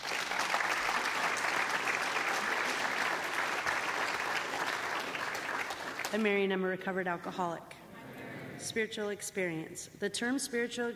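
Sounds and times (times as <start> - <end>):
audience applause welcoming a new speaker at a recovery meeting: 0.0 - 6.2
speech: 6.1 - 7.8, 8.6 - 10.9.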